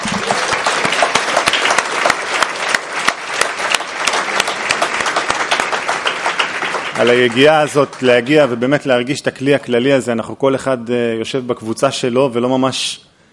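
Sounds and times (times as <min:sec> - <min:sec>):
audience applause: 0:00.0 - 0:08.6
speech: 0:07.0 - 0:13.1.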